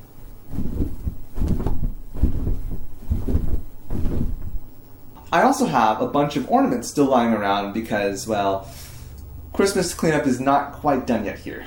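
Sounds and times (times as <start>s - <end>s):
heavy blanket shaken to imitate wind on sails: 0.2s - 4.7s
speech: 5.3s - 8.8s, 9.6s - 11.6s.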